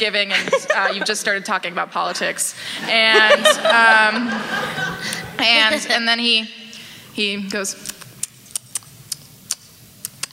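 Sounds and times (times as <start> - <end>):
speech: 0.0 - 6.6, 7.2 - 8.0
laughter: 0.2 - 1.4, 2.8 - 6.0
person imitating chewing sounds: 7.8 - 10.3.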